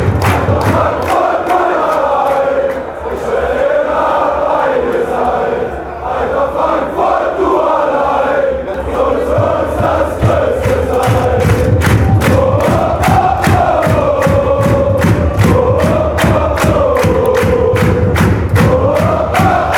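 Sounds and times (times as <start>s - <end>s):
fans chanting: 0.0s - 19.7s.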